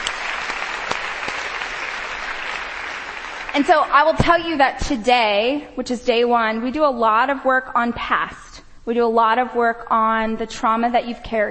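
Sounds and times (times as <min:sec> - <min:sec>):
audience clapping: 0:00.0 - 0:04.3
speech: 0:03.6 - 0:11.4.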